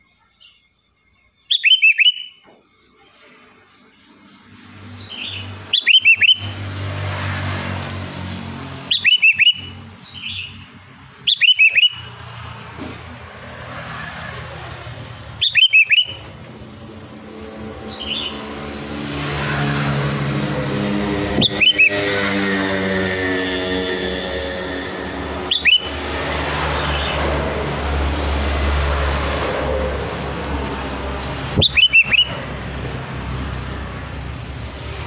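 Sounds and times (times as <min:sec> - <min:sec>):
sooty-headed bulbul singing: 0:00.0 - 0:02.6, 0:04.8 - 0:06.9, 0:08.8 - 0:12.2, 0:15.2 - 0:18.8, 0:20.7 - 0:27.4, 0:31.2 - 0:32.6
passing traffic: 0:01.5 - 0:35.0.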